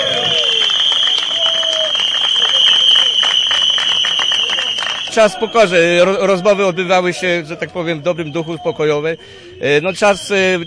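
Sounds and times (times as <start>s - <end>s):
applause at a picket: 0.0s - 5.6s
speech: 5.2s - 10.6s.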